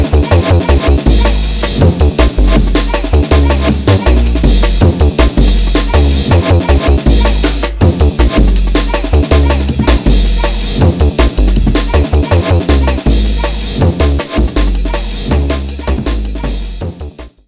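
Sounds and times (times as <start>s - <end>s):
bass kick drum: 0.0s - 17.4s.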